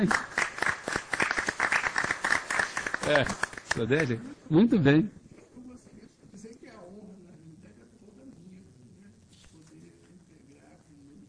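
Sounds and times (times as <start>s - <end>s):
speech: 0.0s - 0.3s, 3.1s - 5.2s
people clapping: 0.0s - 4.2s.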